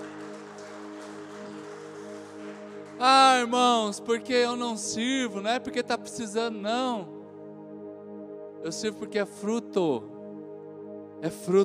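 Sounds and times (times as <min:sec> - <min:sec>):
audience applauding: 0:00.0 - 0:04.3
sustained keyboard chord: 0:00.0 - 0:11.6
speech: 0:03.0 - 0:07.2, 0:08.6 - 0:10.2, 0:11.2 - 0:11.6.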